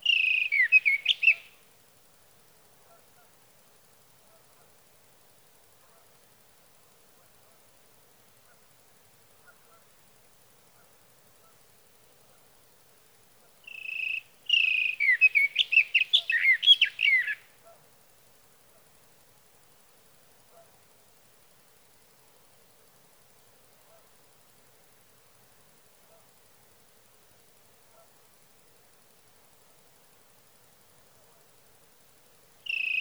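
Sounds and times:
sage thrasher: 0.0s - 1.6s, 13.7s - 17.4s, 32.7s - 32.9s.

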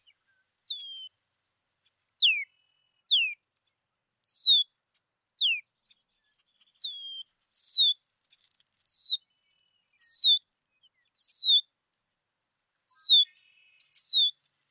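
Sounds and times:
Red-winged Blackbird calling: 0.7s - 1.1s, 4.3s - 4.6s, 6.3s - 7.9s, 8.9s - 9.2s, 10.0s - 10.4s, 11.2s - 11.6s, 12.9s - 14.3s.

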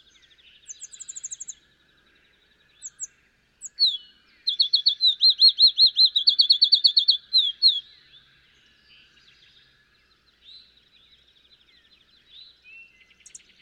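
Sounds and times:
field sparrow: 0.0s - 13.6s.

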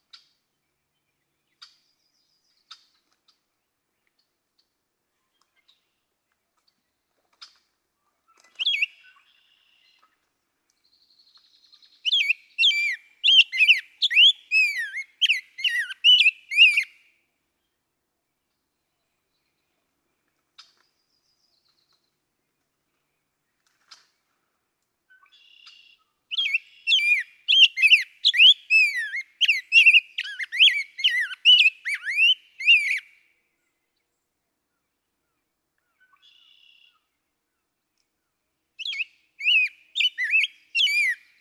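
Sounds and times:
Rose-breasted Grosbeak: 11.7s - 16.9s, 25.3s - 33.0s, 38.8s - 41.3s.

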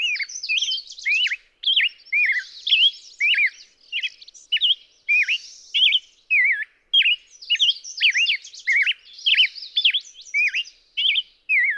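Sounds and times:
Black-headed grosbeak singing whistled notes: 0.0s - 11.7s.

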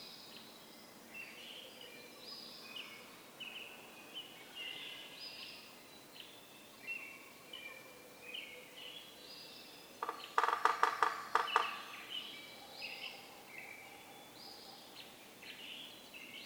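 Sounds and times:
faint whistled birdsong: 0.0s - 10.4s, 11.5s - 16.4s
Yellow-bellied Sapsucker drumming: 10.0s - 11.9s.

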